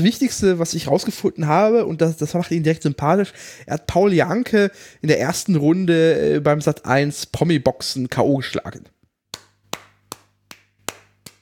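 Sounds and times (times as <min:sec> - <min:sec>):
speech: 0:00.0 - 0:09.0
sharp hand claps: 0:09.3 - 0:11.4.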